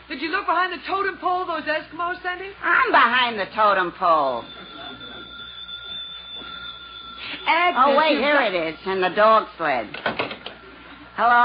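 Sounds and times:
speech: 0:00.1 - 0:04.6, 0:07.4 - 0:10.2, 0:11.2 - 0:11.4
telephone ringing: 0:03.6 - 0:10.0.

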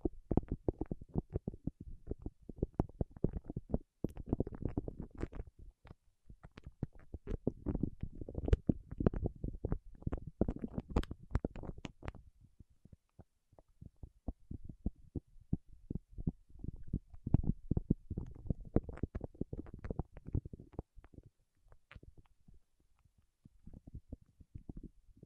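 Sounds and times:
fingertips working over wax: 0:00.3 - 0:12.2, 0:16.0 - 0:22.4.

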